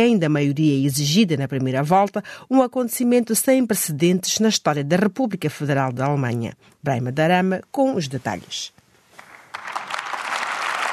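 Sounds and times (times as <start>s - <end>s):
speech: 0.0s - 8.8s
applause in the Bundestag after Friedrich Merz is elected chancellor: 9.2s - 10.9s.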